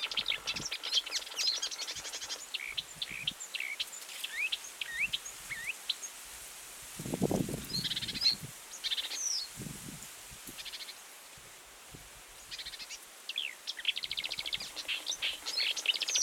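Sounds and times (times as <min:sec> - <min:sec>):
marsh warbler song: 0:00.0 - 0:06.2, 0:07.5 - 0:09.6, 0:12.4 - 0:16.2.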